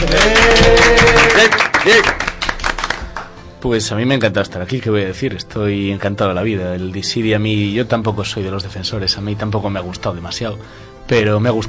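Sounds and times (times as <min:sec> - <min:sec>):
speech: 0:00.0 - 0:00.8, 0:01.4 - 0:02.2, 0:03.6 - 0:11.6
applause: 0:00.0 - 0:03.4.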